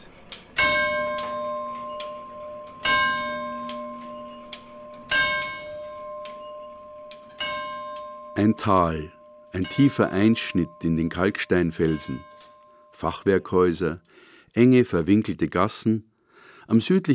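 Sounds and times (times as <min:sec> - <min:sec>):
bright bell tone striking: 0:00.0 - 0:13.0
tower clock mechanisms ticking in clock museum: 0:00.0 - 0:13.0
speech: 0:08.4 - 0:12.3, 0:13.0 - 0:16.1, 0:16.7 - 0:17.1.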